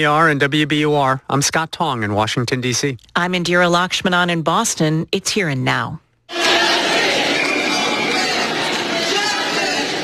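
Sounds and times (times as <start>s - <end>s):
speech: 0.0s - 6.4s
protest crowd chanting justice: 6.3s - 10.0s.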